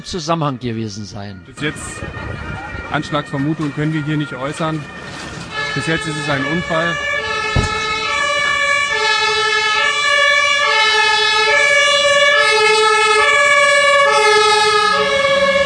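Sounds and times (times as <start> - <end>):
speech: 0.0 - 7.1
fire engine siren passing by: 0.0 - 15.6
low rumble of traffic: 0.0 - 15.6.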